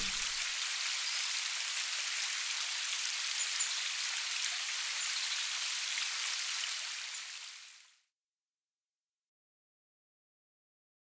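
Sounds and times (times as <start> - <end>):
rain in a forest: 0.0 - 8.0.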